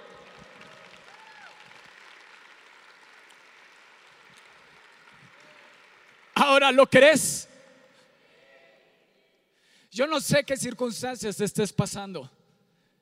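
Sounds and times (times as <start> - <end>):
audience applause: 0.0 - 6.5
speech: 6.4 - 7.5, 10.0 - 12.4.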